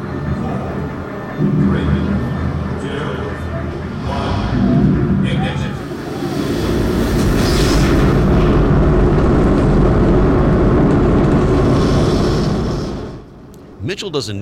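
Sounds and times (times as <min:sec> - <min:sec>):
indistinct voices murmuring: 0:00.0 - 0:07.4
Saturn V rocket engine test firing: 0:00.0 - 0:13.7
speech: 0:01.4 - 0:02.2, 0:14.0 - 0:14.4.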